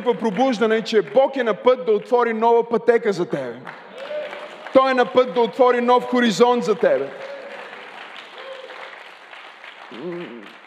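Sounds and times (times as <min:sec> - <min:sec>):
audience applause: 0:00.0 - 0:01.4, 0:03.7 - 0:10.6
speech: 0:00.0 - 0:04.1, 0:04.7 - 0:07.3.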